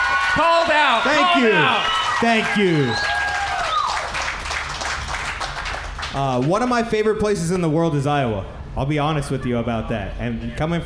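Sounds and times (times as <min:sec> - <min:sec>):
audience clapping: 0:00.0 - 0:06.9
speech: 0:00.4 - 0:03.1, 0:06.1 - 0:10.8.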